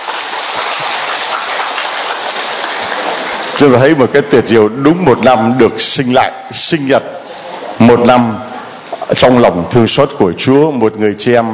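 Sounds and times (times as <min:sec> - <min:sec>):
crowd applause: 0:00.0 - 0:03.9
speech: 0:03.6 - 0:07.1, 0:07.9 - 0:08.5, 0:09.1 - 0:11.5.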